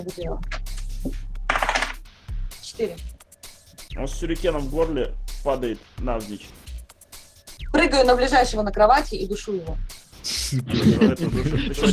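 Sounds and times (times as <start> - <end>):
speech: 0.0 - 1.3, 2.8 - 3.2, 3.9 - 6.6, 7.8 - 11.9
die rattling onto a table during a tabletop role-playing game: 1.5 - 2.0
laughter: 10.5 - 11.9.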